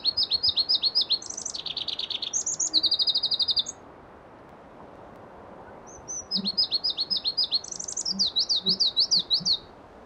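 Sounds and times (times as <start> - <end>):
Pallas's leaf warbler song of trills and buzzes: 0.0 - 3.8, 5.9 - 9.7.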